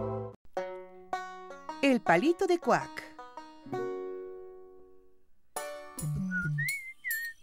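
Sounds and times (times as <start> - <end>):
speech: 1.8 - 3.0
person whistling while walking: 6.0 - 7.4.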